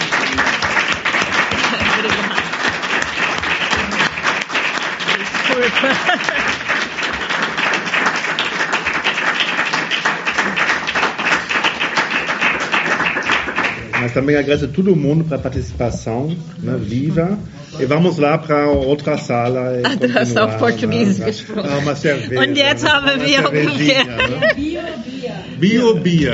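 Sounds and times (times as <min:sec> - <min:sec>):
laughter: 0:00.0 - 0:04.3, 0:05.0 - 0:07.3, 0:19.8 - 0:25.2
audience applause: 0:00.0 - 0:14.4, 0:22.4 - 0:24.5
speech: 0:14.1 - 0:26.3.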